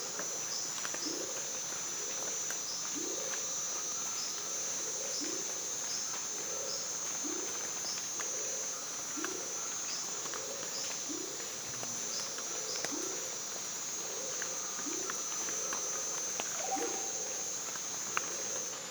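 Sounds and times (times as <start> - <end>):
water dripping from foliage after heavy rain in the Bolivian Amazon: 0.0 - 18.7
frogs in the Bolivian Amazon after heavy rain: 0.0 - 18.8.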